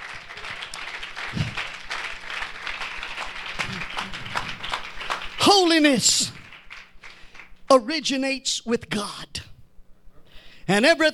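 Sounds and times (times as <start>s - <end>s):
crowd clapping: 0.0s - 7.7s
speech: 5.4s - 6.4s, 7.7s - 9.3s, 10.7s - 11.1s.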